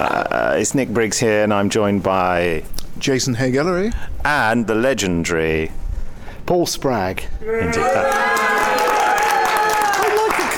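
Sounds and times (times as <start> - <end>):
speech: 0.0 - 5.8, 6.5 - 8.4
audience cheering: 7.4 - 10.5.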